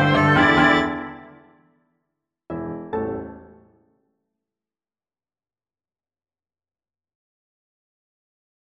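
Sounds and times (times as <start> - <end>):
piano trio ending: 0.0 - 1.4, 2.5 - 3.7.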